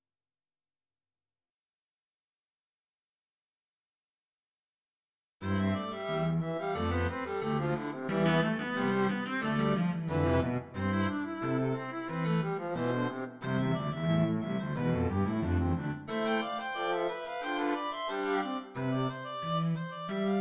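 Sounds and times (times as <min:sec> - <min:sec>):
string octet playing: 0:05.4 - 0:20.4.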